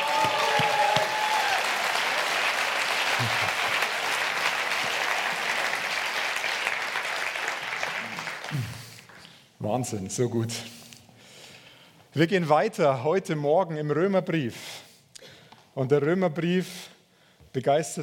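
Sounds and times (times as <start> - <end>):
audience applause for the band: 0.0 - 9.3
speech: 3.2 - 3.5, 9.7 - 10.8, 12.2 - 14.7, 15.8 - 16.8, 17.5 - 18.0.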